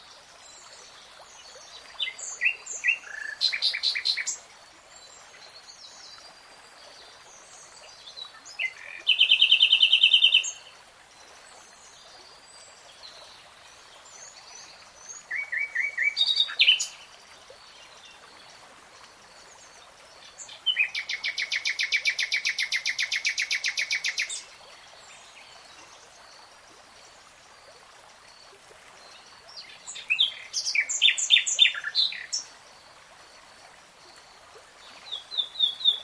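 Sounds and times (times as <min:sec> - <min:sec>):
nightingale song: 0:01.4 - 0:04.4, 0:07.7 - 0:10.7, 0:14.0 - 0:18.2, 0:19.4 - 0:26.4, 0:29.0 - 0:32.5, 0:34.8 - 0:36.0.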